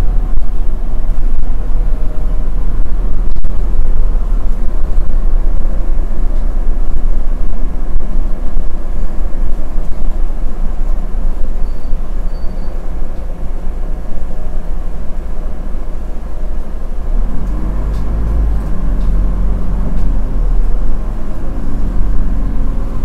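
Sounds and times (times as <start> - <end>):
bus ride noise: 0.0 - 23.0.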